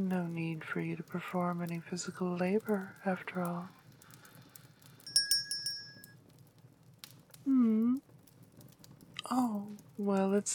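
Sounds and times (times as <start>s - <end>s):
speech: 0.0s - 3.8s, 9.3s - 10.5s
bell ringing to call servants: 5.1s - 6.1s.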